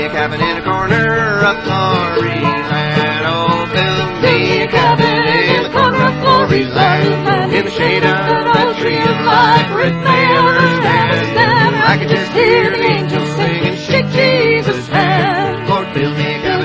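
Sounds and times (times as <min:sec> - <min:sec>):
banjo: 0:00.0 - 0:16.6
guitar: 0:00.0 - 0:16.6
mandolin: 0:00.0 - 0:16.6
people singing: 0:00.0 - 0:16.6.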